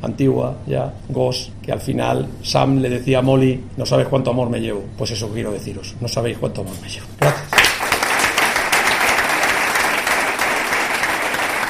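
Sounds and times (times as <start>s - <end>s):
speech: 0.0s - 7.6s
long ovation applause from a large crowd at a farewell: 7.2s - 11.6s.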